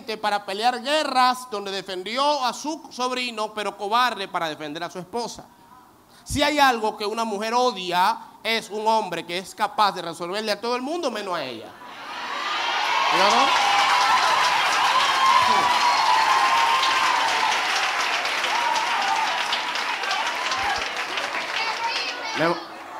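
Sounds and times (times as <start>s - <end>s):
speech: 0.1s - 5.6s, 6.2s - 11.8s, 13.1s - 13.7s, 22.4s - 22.7s
shouts and cheers: 11.8s - 22.9s
large audience applause: 12.3s - 22.9s.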